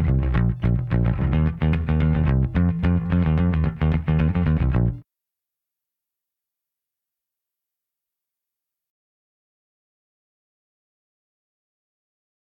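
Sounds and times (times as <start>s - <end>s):
rhythm: 0.0s - 5.0s.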